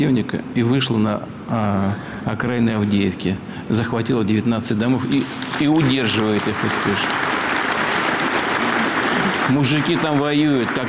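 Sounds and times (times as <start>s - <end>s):
speech: 0.0s - 7.3s, 9.5s - 10.8s
loud dense applause from a large crowd: 5.1s - 10.8s.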